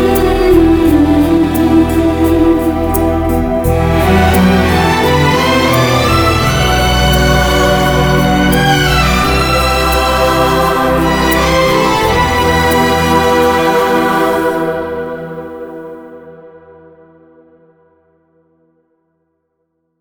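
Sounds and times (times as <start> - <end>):
instrumental theme music: 0.0 - 16.0.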